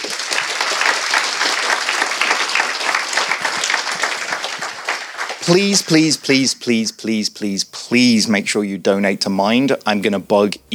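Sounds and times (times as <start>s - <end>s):
audience round of applause: 0.0s - 6.5s
speech: 5.5s - 10.7s.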